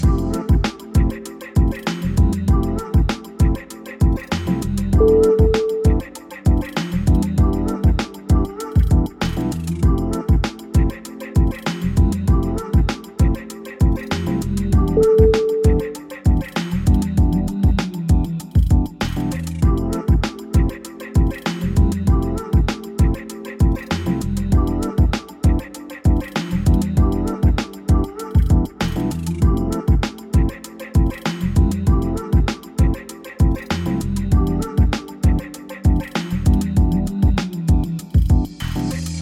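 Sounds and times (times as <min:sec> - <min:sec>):
mellow music: 0:00.0 - 0:39.1.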